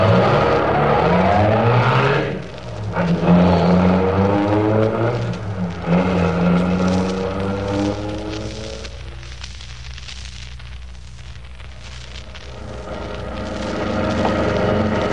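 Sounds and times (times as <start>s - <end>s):
car engine revving and accelerating away: 0.0s - 8.9s, 12.5s - 15.1s.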